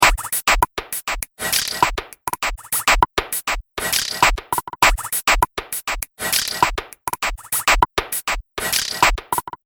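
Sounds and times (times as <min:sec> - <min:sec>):
100 bpm trip hop loop: 0:00.0 - 0:09.6.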